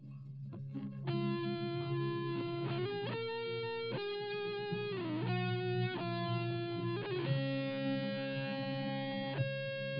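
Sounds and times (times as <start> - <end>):
instrumental music without drums: 0.0 - 9.9.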